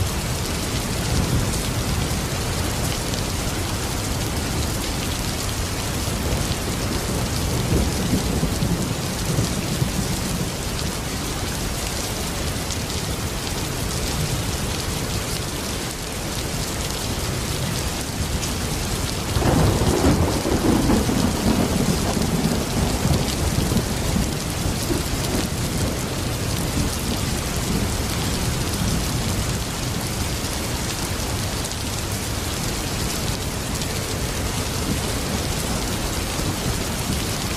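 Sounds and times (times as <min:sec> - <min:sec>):
heavy rain: 0:00.0 - 0:37.5
thunder: 0:19.4 - 0:26.0.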